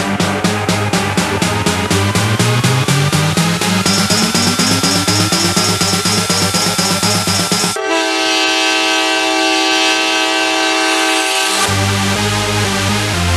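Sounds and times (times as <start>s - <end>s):
train chugging with a rising mechanical whine: 0.0s - 11.7s
loud sustained train horn: 3.8s - 13.2s.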